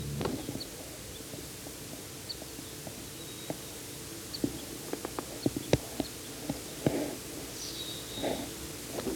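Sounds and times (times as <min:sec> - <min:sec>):
faint ticks and clicks: 0:00.1 - 0:09.1
bird giving type 3 call, high buzzy call notes: 0:00.2 - 0:09.1.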